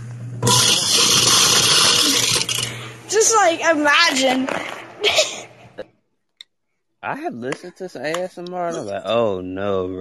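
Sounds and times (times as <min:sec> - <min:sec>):
garbage disposal grinding: 0:00.4 - 0:02.8
speech: 0:03.2 - 0:05.9, 0:07.0 - 0:10.0.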